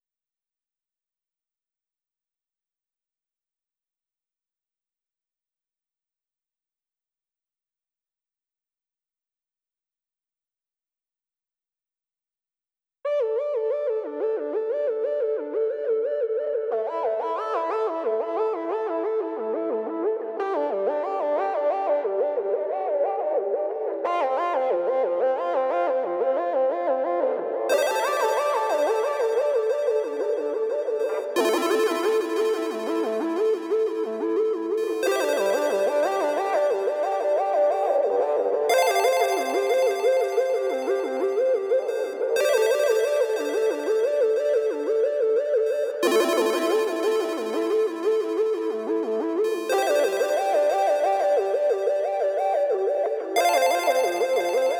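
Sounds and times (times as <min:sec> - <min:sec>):
synthesizers: 0:13.1 - 0:54.7.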